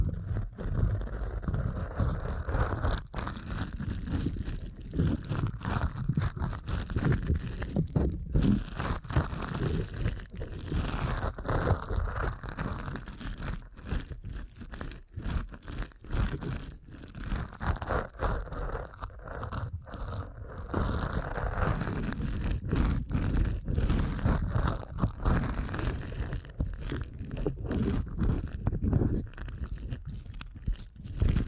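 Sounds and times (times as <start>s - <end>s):
deep ear canal massage rubbing and crinkly scratching: 0.0s - 31.4s
thumps: 7.5s - 8.6s.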